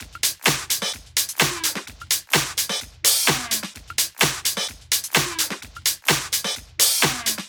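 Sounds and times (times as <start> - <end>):
drum kit at 128 BPM: 0.0 - 7.4.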